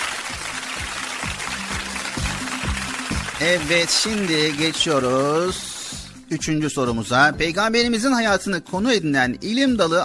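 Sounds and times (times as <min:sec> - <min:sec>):
applause: 0:00.0 - 0:06.2
speech: 0:03.4 - 0:05.7, 0:06.3 - 0:10.0.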